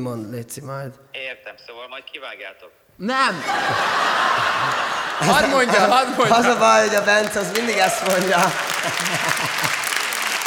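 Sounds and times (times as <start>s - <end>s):
speech: 0.0s - 9.6s
laughter: 3.3s - 10.4s
crowd applause: 3.6s - 10.4s.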